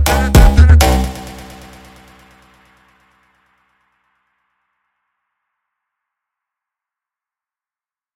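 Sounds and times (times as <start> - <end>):
Brazilian phonk beat: 0.0 - 2.4.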